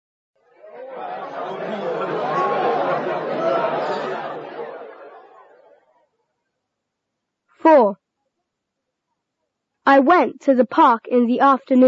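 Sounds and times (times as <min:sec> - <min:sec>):
busy restaurant chatter: 0:00.5 - 0:06.1
laughter: 0:00.6 - 0:05.8
speech: 0:07.6 - 0:08.0, 0:09.9 - 0:11.8.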